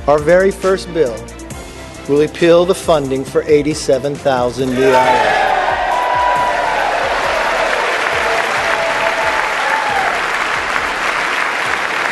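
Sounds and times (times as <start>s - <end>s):
speech: 0.0s - 1.4s, 2.1s - 5.4s
applause in the House of Representatives: 4.8s - 12.1s.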